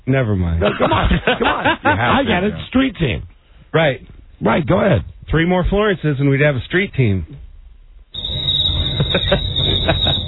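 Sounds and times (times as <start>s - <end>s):
speech: 0.1s - 7.4s, 9.1s - 10.2s
laughter: 0.6s - 2.6s, 8.8s - 10.2s
cricket chirping sound effect: 8.1s - 10.2s.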